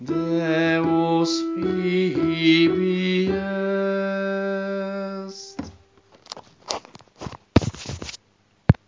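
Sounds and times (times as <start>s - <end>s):
choir sopranos singing: 0.0s - 5.7s.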